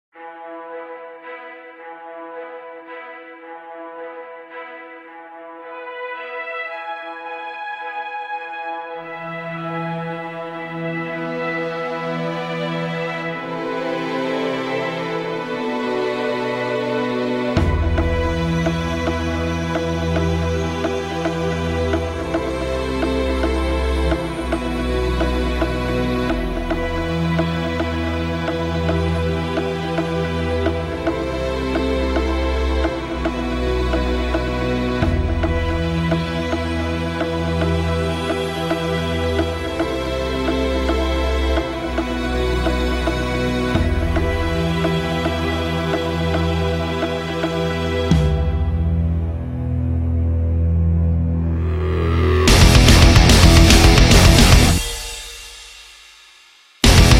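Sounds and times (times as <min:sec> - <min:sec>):
instrumental music: 0:00.2 - 0:56.1, 0:56.8 - 0:57.1.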